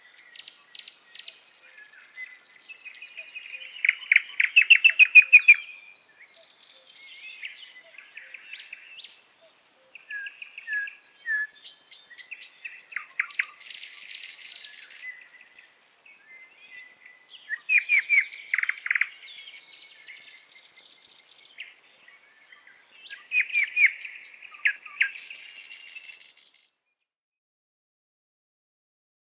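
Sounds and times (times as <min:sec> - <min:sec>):
nightingale singing in a forest: 0:00.0 - 0:26.9.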